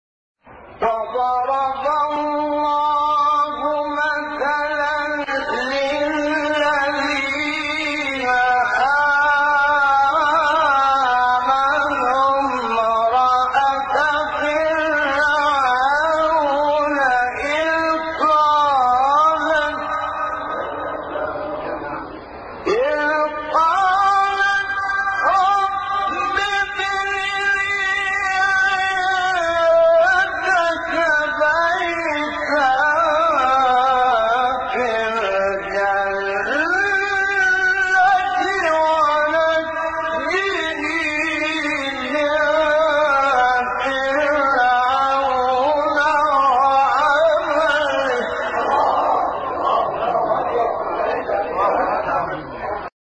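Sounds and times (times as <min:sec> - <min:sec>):
Quran verse recitation: 0:00.7 - 0:52.9.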